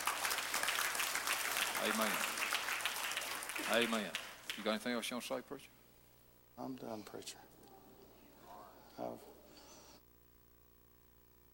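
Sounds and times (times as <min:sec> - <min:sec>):
audience applause: 0:00.0 - 0:05.0
speech: 0:01.8 - 0:02.4, 0:03.6 - 0:05.8, 0:06.6 - 0:07.5, 0:09.0 - 0:09.3.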